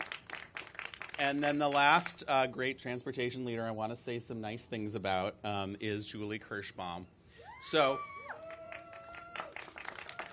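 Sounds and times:
faint audience applause at a civic speech in San Francisco: 0:00.0 - 0:01.9, 0:08.2 - 0:10.3
speech: 0:01.2 - 0:08.1.

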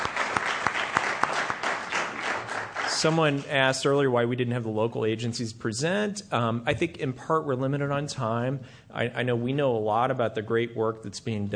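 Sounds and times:
audience applause for social service providers: 0:00.0 - 0:03.5
speech: 0:03.0 - 0:11.5.

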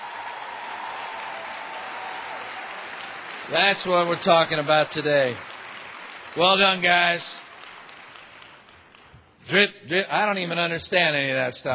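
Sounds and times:
audience applause: 0:00.0 - 0:09.4
speech: 0:03.5 - 0:05.5, 0:06.4 - 0:07.4, 0:09.5 - 0:11.7.

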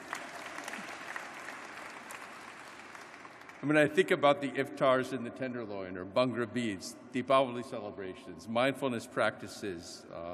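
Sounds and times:
audience applause: 0:00.0 - 0:03.8
speech: 0:03.6 - 0:10.3.

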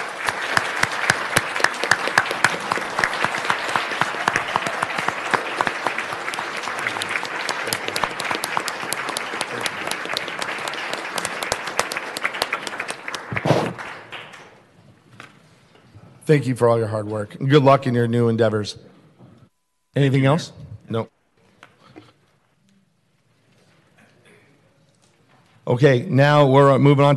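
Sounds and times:
crowd round of applause: 0:00.0 - 0:14.7
speech: 0:16.3 - 0:18.9, 0:20.0 - 0:21.1, 0:25.7 - 0:27.1.

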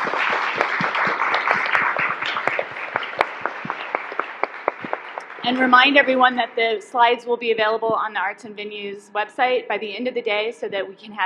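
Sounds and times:
audience applause for speakers: 0:00.0 - 0:06.1
speech: 0:05.4 - 0:11.2.

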